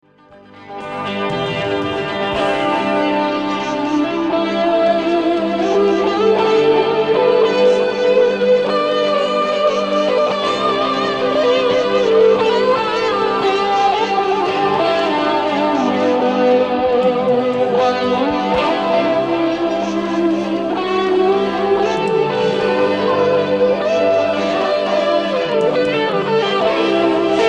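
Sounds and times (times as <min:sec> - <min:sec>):
isolated guitar: 0:00.0 - 0:27.4.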